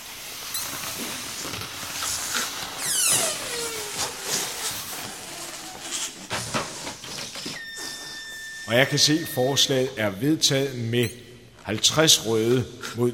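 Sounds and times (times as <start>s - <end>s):
balloons being blown up: 0.1s - 8.2s
air escaping from a balloon with a falling squeal: 2.2s - 6.3s, 7.3s - 9.6s
speech: 8.7s - 13.1s.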